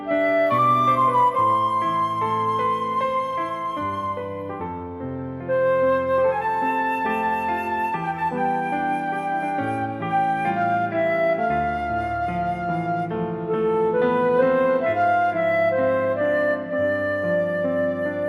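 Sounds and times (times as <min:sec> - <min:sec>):
flute playing reference note C: 0:00.1 - 0:04.8, 0:05.5 - 0:18.2.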